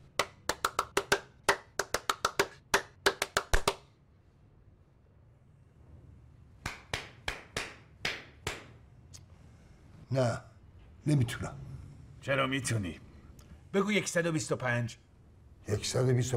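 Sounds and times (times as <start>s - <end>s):
hand clapping: 0.0s - 3.9s, 6.6s - 8.8s
speech: 10.1s - 13.1s, 13.7s - 15.0s, 15.6s - 16.3s.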